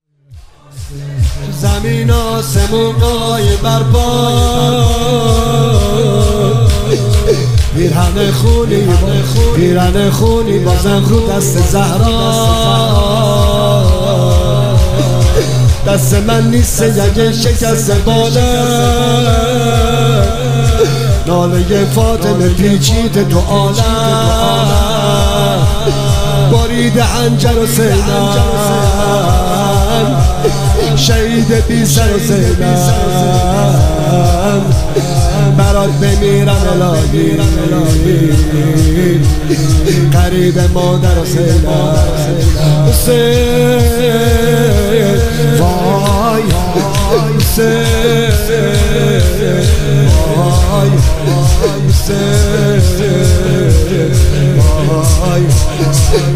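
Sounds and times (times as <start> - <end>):
devotional singing: 0.4 - 56.3.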